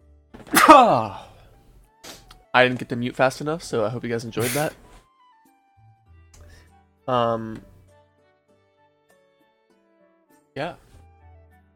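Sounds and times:
sneeze: 0.5s - 1.1s, 4.4s - 4.8s
speech: 0.7s - 1.3s, 2.6s - 4.8s, 7.1s - 7.7s, 10.6s - 10.8s.

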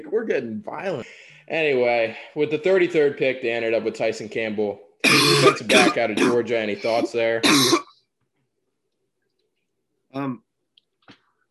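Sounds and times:
speech: 0.0s - 7.8s, 10.1s - 10.4s
cough: 5.0s - 7.9s.

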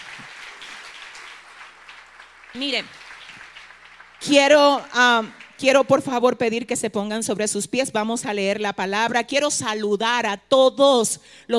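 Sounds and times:
audience applause: 0.0s - 6.3s
speech: 2.5s - 3.0s, 4.2s - 11.5s.

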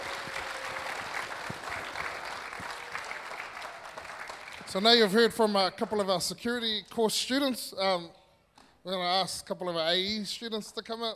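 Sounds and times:
audience applause: 0.0s - 4.8s
speech: 4.7s - 8.2s, 8.8s - 11.1s.

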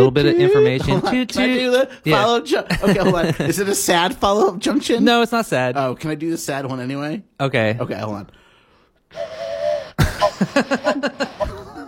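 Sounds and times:
speech: 0.0s - 8.4s, 9.1s - 9.4s, 10.4s - 11.5s
laughter: 0.4s - 1.7s, 2.6s - 3.9s, 10.0s - 11.8s
voice imitating a mournful train whistle: 9.1s - 10.4s.

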